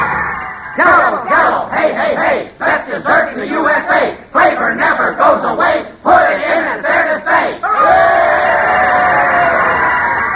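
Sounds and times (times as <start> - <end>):
crowd cheering: 0.0 - 2.2, 6.1 - 10.3
speech: 0.8 - 7.6.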